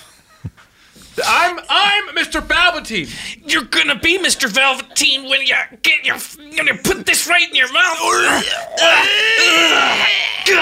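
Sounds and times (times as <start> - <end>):
speech: 1.4 - 10.6
two people screaming: 8.0 - 10.6.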